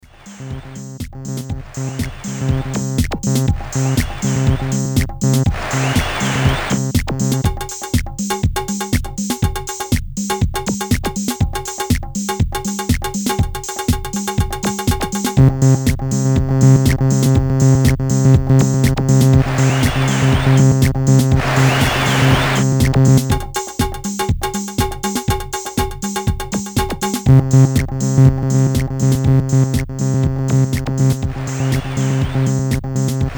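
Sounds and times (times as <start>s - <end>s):
drum solo: 0.0s - 33.3s.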